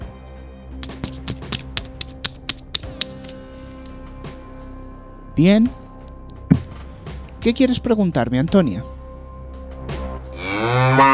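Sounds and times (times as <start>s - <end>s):
deck of cards shuffled: 0.8s - 4.0s
low hum: 1.9s - 9.9s
speech: 5.4s - 5.8s, 7.4s - 9.0s.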